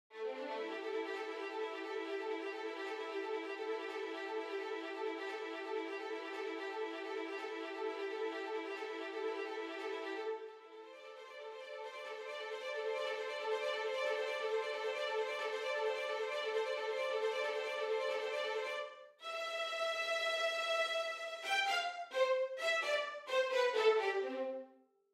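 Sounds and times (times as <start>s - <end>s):
violins: 0.1s - 24.7s.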